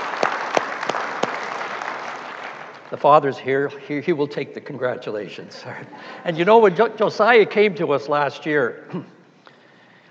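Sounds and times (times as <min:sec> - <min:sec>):
audience applauding: 0:00.0 - 0:03.5
speech: 0:02.9 - 0:09.2.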